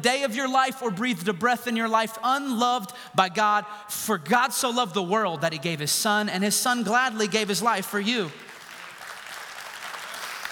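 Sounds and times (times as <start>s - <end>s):
speech: 0.0s - 8.5s
audience clapping: 8.2s - 10.5s.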